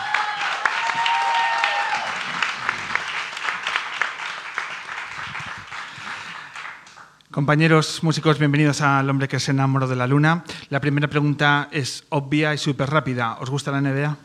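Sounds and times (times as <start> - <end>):
audience applause for three musicians: 0.0 - 7.2
speech: 7.4 - 14.2.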